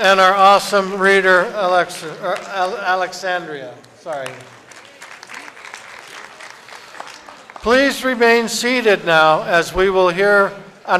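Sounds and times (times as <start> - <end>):
speech: 0.0 - 4.6, 7.6 - 10.9
audience applause: 3.8 - 8.2.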